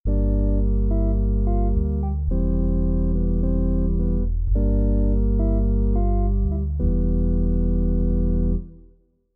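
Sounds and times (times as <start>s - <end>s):
CS80 synthesizer pad: 0.1s - 8.9s.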